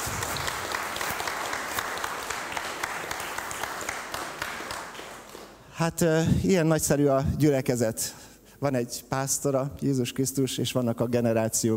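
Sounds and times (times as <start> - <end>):
audience applause: 0.0 - 5.6
speech: 5.8 - 11.7.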